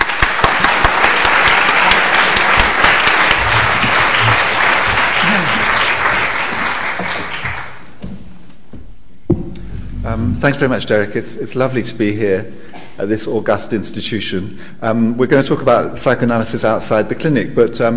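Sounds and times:
crowd applauding: 0:00.0 - 0:07.9
speech: 0:10.4 - 0:17.9.

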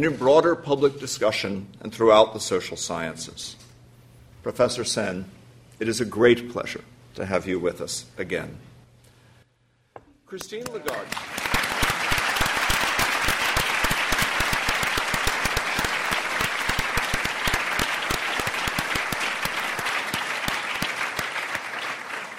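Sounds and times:
speech: 0:00.0 - 0:03.6, 0:04.4 - 0:08.7, 0:10.3 - 0:11.4
audience applause: 0:10.5 - 0:22.3.

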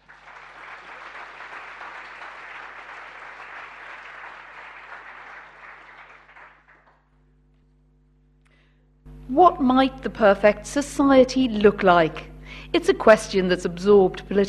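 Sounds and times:
audience round of applause: 0:00.0 - 0:07.1
speech: 0:09.3 - 0:14.4.

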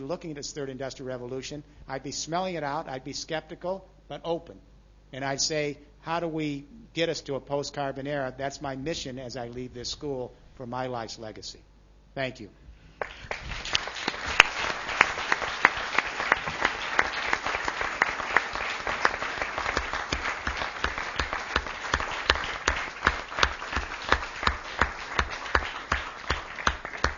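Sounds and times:
speech: 0:00.0 - 0:13.6
lecture audience applause: 0:13.0 - 0:27.1.

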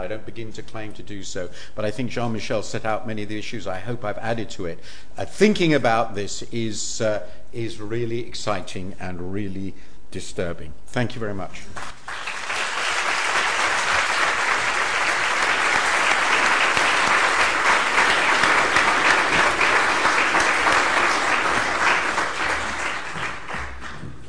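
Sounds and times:
speech: 0:00.0 - 0:12.0
audience applause: 0:12.0 - 0:24.0.

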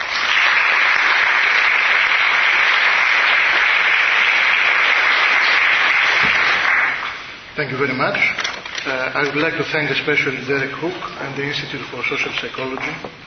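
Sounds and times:
audience clapping to welcome a speaker at an LSE lecture: 0:00.0 - 0:07.3
speech: 0:07.6 - 0:13.2.

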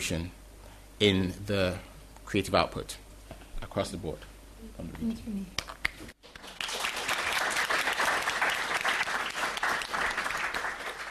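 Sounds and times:
speech: 0:00.0 - 0:00.4, 0:01.0 - 0:03.0, 0:03.6 - 0:06.1
sustained group applause: 0:05.6 - 0:11.0.

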